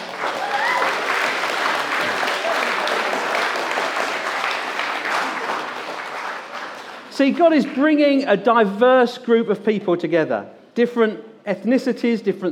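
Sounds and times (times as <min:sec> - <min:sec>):
audience applause: 0:00.0 - 0:07.8
speech: 0:07.2 - 0:12.5.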